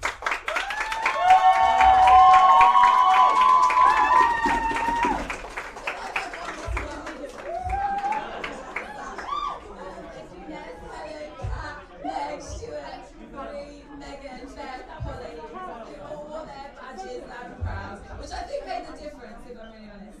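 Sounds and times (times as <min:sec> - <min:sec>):
steady clapping: 0:00.0 - 0:09.6
campaign team cheering and whooping: 0:00.5 - 0:05.6, 0:07.3 - 0:09.7
laughter: 0:05.9 - 0:19.0.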